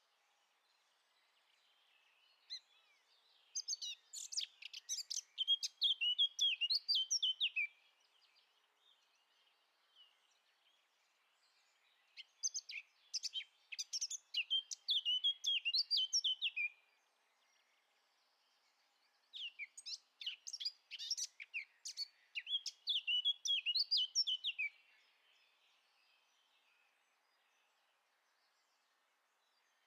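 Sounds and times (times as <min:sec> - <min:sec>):
Eurasian blackcap singing: 0:03.6 - 0:07.7, 0:12.2 - 0:16.7, 0:19.3 - 0:24.9.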